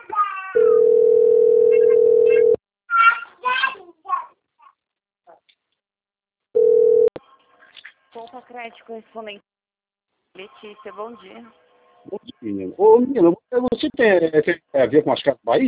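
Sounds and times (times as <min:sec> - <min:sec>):
telephone ringing tone: 0:00.6 - 0:02.6, 0:06.6 - 0:07.1
speech: 0:08.5 - 0:09.6, 0:10.4 - 0:15.6.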